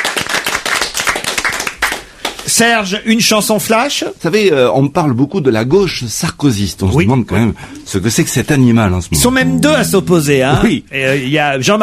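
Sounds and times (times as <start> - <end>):
audience clapping for the winner of a game show: 0.0 - 2.6
speech: 2.6 - 11.8.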